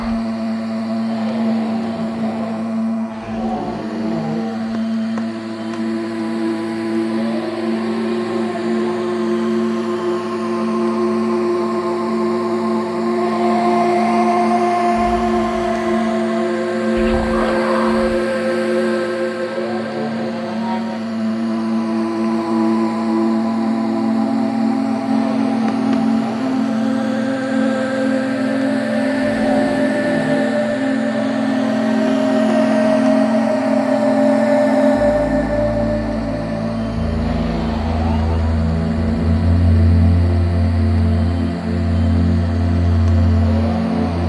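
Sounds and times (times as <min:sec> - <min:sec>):
deep rumbling low layer: 0:00.0 - 0:07.2, 0:14.6 - 0:21.2, 0:34.9 - 0:44.2
dark forest drone of layered sustained tones: 0:00.0 - 0:44.2.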